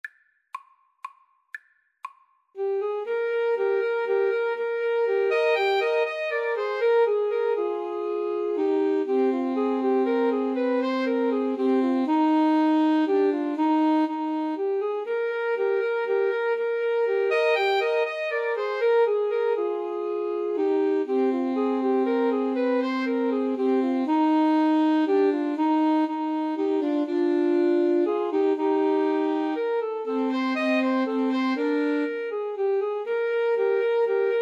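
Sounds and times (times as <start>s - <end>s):
alto sax trio playing a classical minuet: 2.6s - 34.4s.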